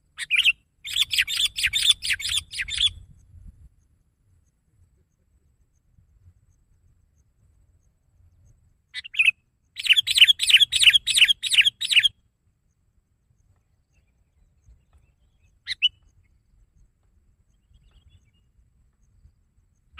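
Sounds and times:
sooty-headed bulbul singing: 0.1s - 3.1s, 8.9s - 12.2s, 13.9s - 16.3s.

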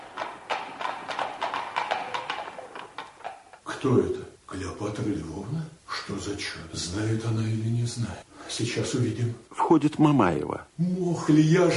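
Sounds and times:
horse-drawn carriage clattering up: 0.0s - 3.7s
speech: 3.8s - 11.7s.

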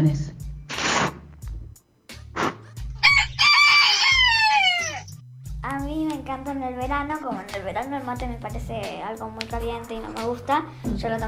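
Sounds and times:
speech: 0.0s - 0.3s, 6.4s - 11.2s
low thumping: 0.0s - 3.5s, 5.0s - 11.2s
hissy bursts: 0.7s - 1.4s
rooster crowing: 3.0s - 5.2s.

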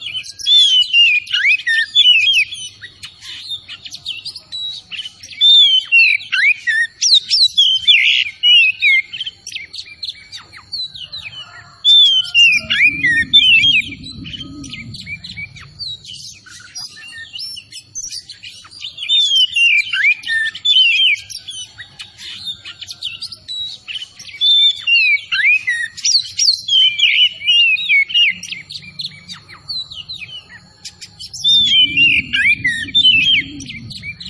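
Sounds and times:
Oriental magpie-robin song: 0.0s - 34.2s
low rumble: 12.0s - 16.5s, 31.4s - 34.2s.

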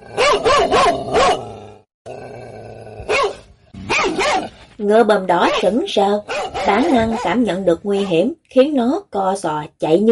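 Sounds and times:
mastiff barking fiercely: 0.0s - 1.7s, 3.0s - 4.6s, 5.4s - 7.4s
speech: 4.8s - 10.0s.

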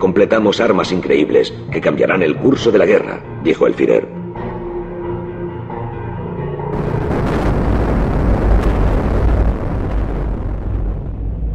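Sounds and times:
speech: 0.0s - 4.2s
bomb explosion: 6.7s - 11.5s.

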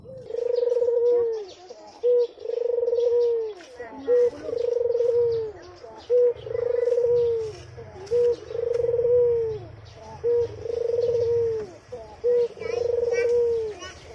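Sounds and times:
white Barbary dove cooing: 0.0s - 14.1s.

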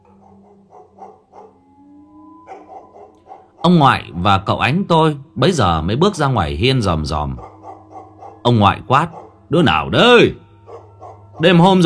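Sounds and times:
grandparents' dog barking loudly: 0.2s - 1.6s, 2.5s - 3.7s, 7.4s - 9.5s, 10.7s - 11.6s
speech: 3.6s - 7.5s, 8.4s - 10.4s, 11.4s - 11.8s.

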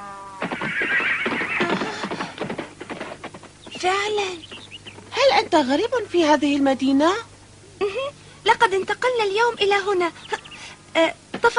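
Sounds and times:
fierce horse neighing: 0.0s - 2.5s
speech: 3.8s - 4.5s, 5.2s - 10.4s, 11.0s - 11.5s.

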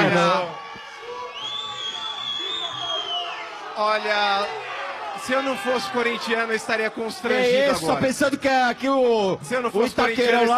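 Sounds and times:
stadium crowd of fans cheering: 0.0s - 9.1s
high whistle-like tone: 1.2s - 3.5s
speech: 3.8s - 4.6s, 5.2s - 10.5s.

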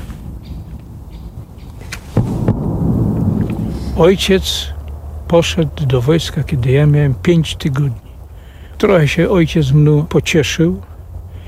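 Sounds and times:
mining explosives detonating at test range: 2.1s - 5.8s
speech: 4.0s - 4.7s, 5.3s - 8.0s, 8.8s - 10.9s.

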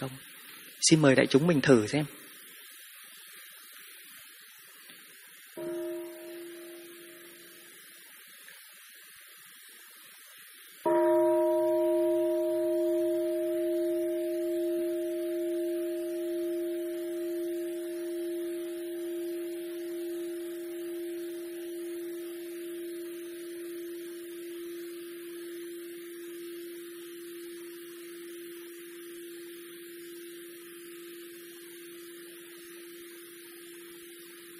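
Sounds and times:
speech: 0.0s - 2.2s
meditation bell struck and resonating: 5.6s - 7.9s, 10.9s - 34.5s.

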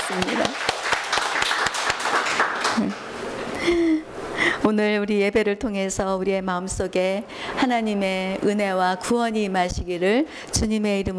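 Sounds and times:
audience applause: 0.0s - 3.1s
speech: 0.1s - 0.7s, 3.7s - 4.0s, 4.7s - 11.1s.

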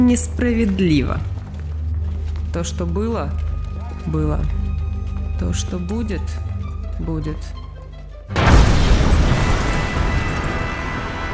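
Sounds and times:
speech: 0.1s - 1.3s, 2.5s - 4.7s, 5.4s - 7.6s
deep booming explosion blast: 8.3s - 11.3s.

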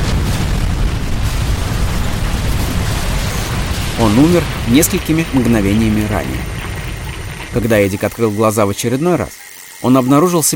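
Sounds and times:
aircraft crash impact: 0.0s - 7.4s
powerful explosion: 0.0s - 7.8s
speech: 4.0s - 6.5s, 7.6s - 10.5s.

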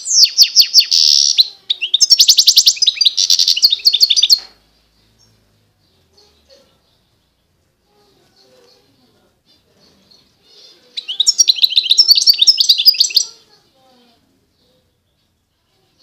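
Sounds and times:
wild European goldfinch singing: 0.0s - 4.5s, 10.9s - 13.4s.

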